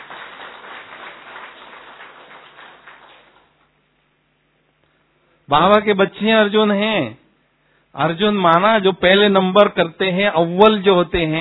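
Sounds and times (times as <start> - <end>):
audience applause: 0.0 - 3.6
speech: 5.5 - 7.2, 7.9 - 11.3.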